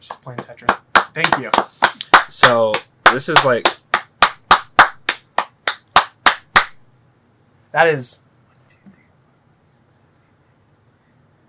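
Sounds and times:
speech: 0.0 - 3.8, 7.7 - 8.3
hand clapping: 0.0 - 6.8.

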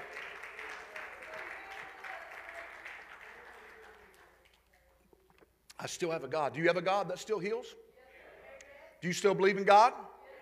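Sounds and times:
audience clapping hands: 0.0 - 4.8
speech: 5.8 - 7.8, 9.0 - 10.1.

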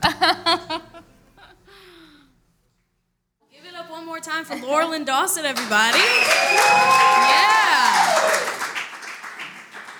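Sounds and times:
speech: 4.5 - 7.5
audience applause: 5.5 - 9.9.

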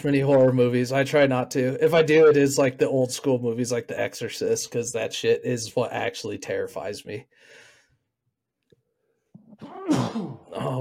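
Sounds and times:
speech: 0.0 - 7.6, 9.6 - 10.7
faint breath: 7.3 - 8.0
loud sneeze: 9.6 - 10.6.

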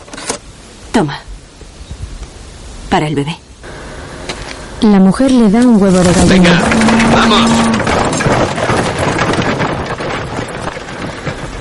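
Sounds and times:
speech: 1.0 - 1.3, 2.9 - 3.4, 4.8 - 7.9
horse-drawn cart driving away: 3.7 - 11.5.

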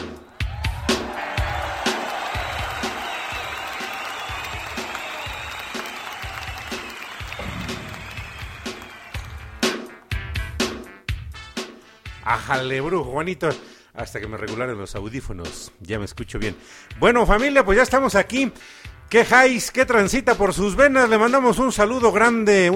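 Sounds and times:
audience applause and cheering: 0.0 - 10.2
speech: 12.3 - 22.7.

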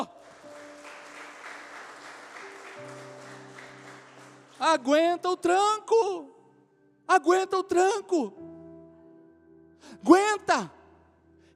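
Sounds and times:
audience applauding loudly: 0.0 - 5.0
speech: 4.6 - 6.4, 7.1 - 8.4, 9.8 - 10.8.

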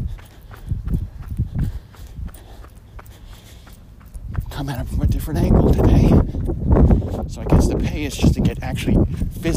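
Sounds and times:
footsteps climbing stairs inside a fort: 0.0 - 7.4
speech: 4.6 - 9.5.

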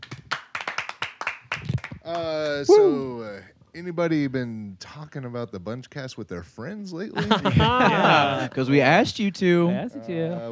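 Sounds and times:
applause: 0.0 - 2.7
speech: 2.1 - 10.5
laughter: 7.0 - 8.8.

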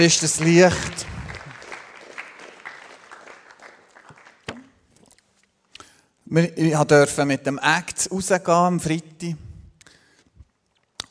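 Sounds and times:
speech: 0.0 - 1.2, 6.3 - 9.5
audience applause: 0.0 - 4.5.

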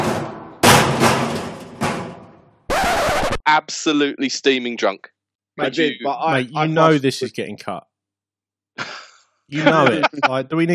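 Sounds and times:
heavy metallic impacts: 0.0 - 2.6
speech: 3.5 - 7.9, 8.8 - 10.7
laughter: 8.8 - 10.7.

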